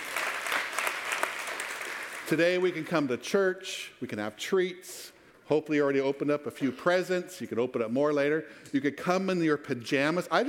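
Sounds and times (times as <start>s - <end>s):
audience applause: 0.0s - 2.6s
speech: 2.3s - 10.4s.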